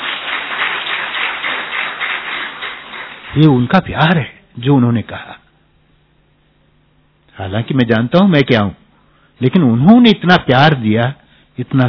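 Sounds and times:
audience applause: 0.0 - 3.7
speech: 3.4 - 5.4, 7.4 - 8.8, 9.4 - 11.8.

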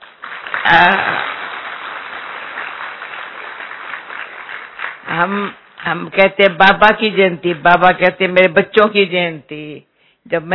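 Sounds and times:
audience clapping: 0.0 - 6.0
speech: 0.7 - 1.2, 5.2 - 10.5.

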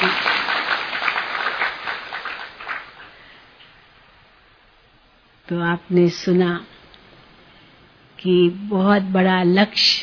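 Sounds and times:
audience clapping: 0.0 - 3.2
speech: 5.5 - 6.7, 8.2 - 10.0.

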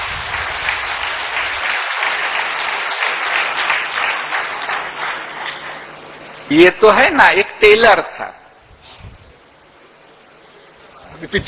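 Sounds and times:
crowd applause: 0.0 - 6.1
speech: 6.5 - 8.4.

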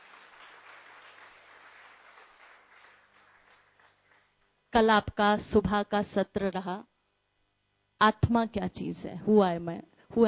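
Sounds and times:
crowd applause: 0.0 - 4.3
speech: 4.8 - 6.9, 8.0 - 10.2.

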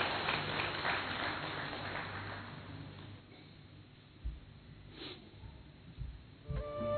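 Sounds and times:
audience applause: 0.0 - 2.8.

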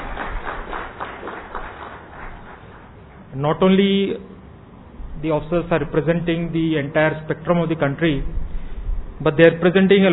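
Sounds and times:
audience applause welcoming officers: 0.0 - 3.0
speech: 3.4 - 4.3, 5.2 - 8.4, 9.2 - 10.1.

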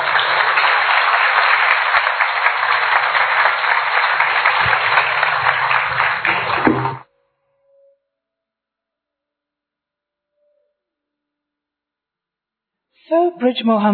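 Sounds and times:
audience applause welcoming a guest speaker: 0.0 - 7.0
speech: 13.4 - 13.9.

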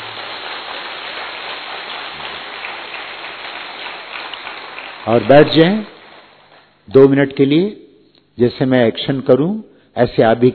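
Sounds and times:
loud applause: 0.0 - 6.6
speech: 5.0 - 5.9, 6.9 - 7.8, 8.4 - 10.5.

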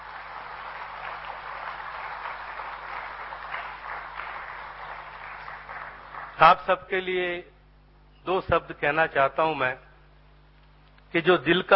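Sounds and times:
loud applause: 0.0 - 6.7
speech: 6.4 - 7.5, 8.2 - 9.9, 11.1 - 11.7.

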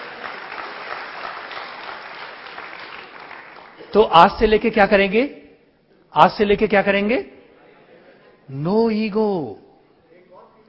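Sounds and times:
audience clapping: 0.0 - 4.0
speech: 3.9 - 5.4, 6.1 - 7.4, 8.5 - 9.6.

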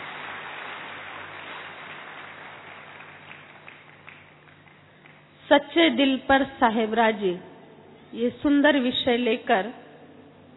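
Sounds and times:
audience applause welcoming a speaker: 0.0 - 5.2
speech: 5.5 - 7.5, 8.1 - 9.8.

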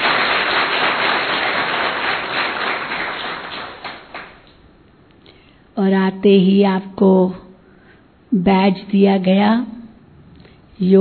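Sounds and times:
audience clapping: 0.0 - 4.6
speech: 5.8 - 7.4, 8.3 - 9.8, 10.8 - 10.9.

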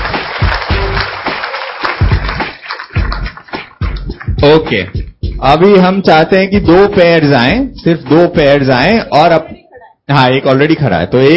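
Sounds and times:
audience clapping: 0.0 - 5.4
speech: 4.4 - 9.5, 10.1 - 11.3.

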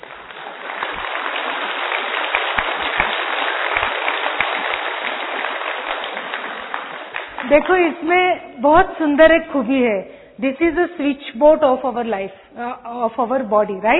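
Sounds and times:
crowd clapping: 0.0 - 8.2
speech: 7.5 - 13.9.

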